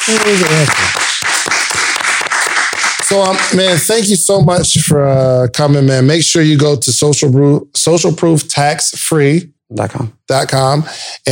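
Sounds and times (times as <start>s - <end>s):
speech: 0.0s - 1.3s, 3.1s - 11.2s
audience applause: 0.0s - 4.0s.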